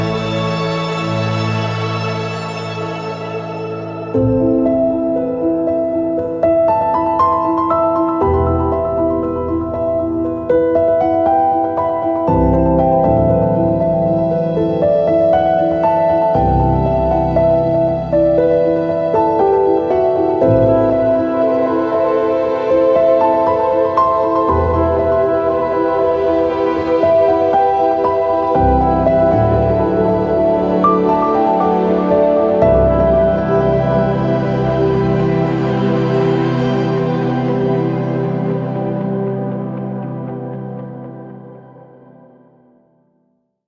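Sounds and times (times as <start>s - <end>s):
sweet piano: 0.0s - 43.2s.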